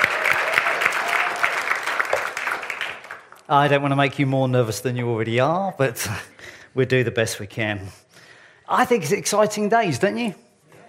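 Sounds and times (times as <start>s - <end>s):
faint cheering voices: 0.0s - 1.9s
audience clapping: 0.0s - 3.7s
speech: 3.5s - 8.0s, 8.7s - 10.4s.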